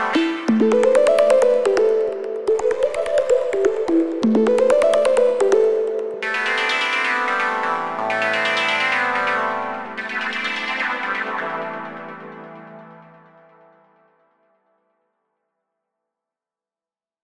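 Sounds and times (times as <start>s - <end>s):
analog piano: 0.1s - 12.4s
melodic tech voices: 0.2s - 6.7s.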